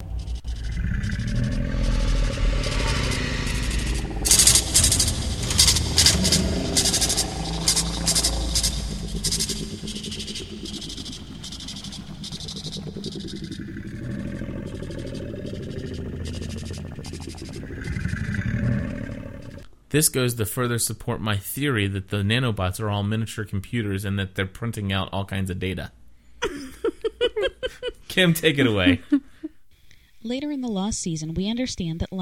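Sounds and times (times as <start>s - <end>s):
clattering and scraping: 0.0s - 13.4s
monster roaring: 0.0s - 19.6s
speech: 20.0s - 26.0s, 28.2s - 29.2s, 30.2s - 32.1s
laughter: 26.4s - 29.5s.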